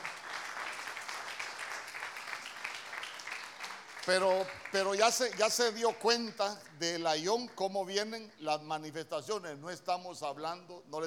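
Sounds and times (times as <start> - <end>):
audience applause: 0.0 - 6.6
speech: 4.0 - 11.0.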